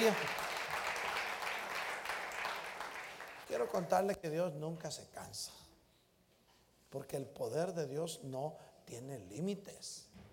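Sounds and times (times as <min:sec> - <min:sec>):
speech: 0:00.0 - 0:00.4, 0:03.6 - 0:05.7, 0:06.9 - 0:10.3
audience applause: 0:00.0 - 0:03.8.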